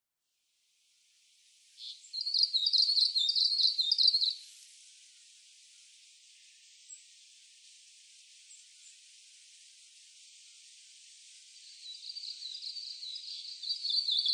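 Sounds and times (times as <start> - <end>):
Japanese leaf warbler song: 1.8 - 4.4, 11.7 - 14.3.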